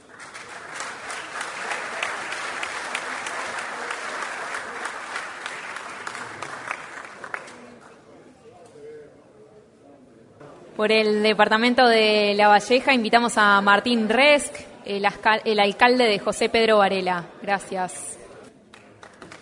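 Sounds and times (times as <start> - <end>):
audience applause: 0.0 - 8.0, 18.7 - 19.3
speech: 10.8 - 18.1.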